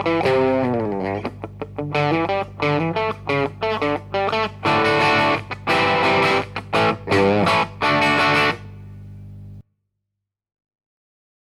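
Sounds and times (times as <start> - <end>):
instrument tuning: 0.0 - 9.0.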